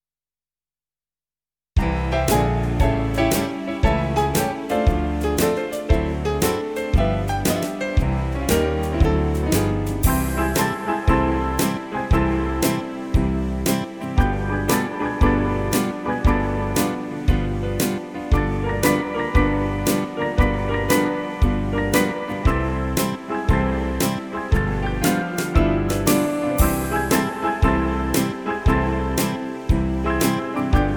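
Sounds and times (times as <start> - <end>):
blues music: 1.8 - 30.9.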